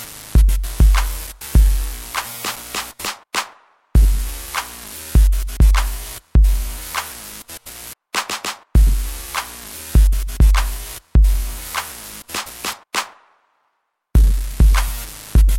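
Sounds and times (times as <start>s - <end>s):
synthesized kick beats: 0.4s - 2.9s, 4.0s - 7.0s, 8.8s - 12.0s, 14.2s - 15.5s.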